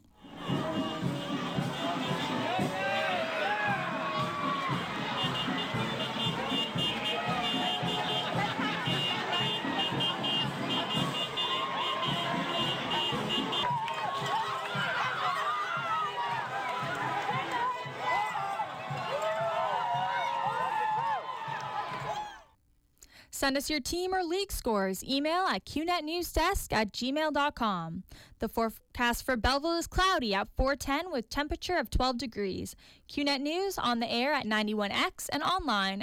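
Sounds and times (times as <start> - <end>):
parade crowd cheering for the Grey Cup champions: 0.2 - 22.5
speech: 23.4 - 36.0.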